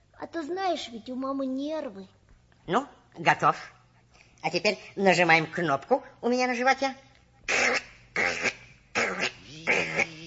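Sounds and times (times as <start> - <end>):
speech: 0.3 - 3.8, 4.4 - 7.8
voice imitating a humming motor: 7.5 - 10.2.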